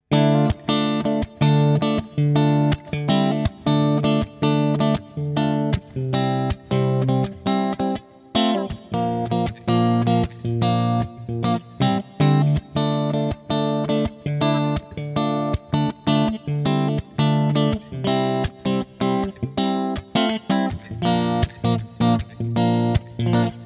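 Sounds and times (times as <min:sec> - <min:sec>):
Framus Diablo Pro electric guitar, bridge and middle pickup split, clean: 0:00.0 - 0:23.6.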